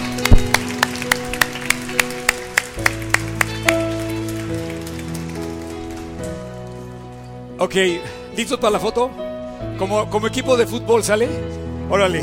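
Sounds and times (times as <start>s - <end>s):
applause for the parents: 0.0s - 6.9s
speech: 7.6s - 12.2s.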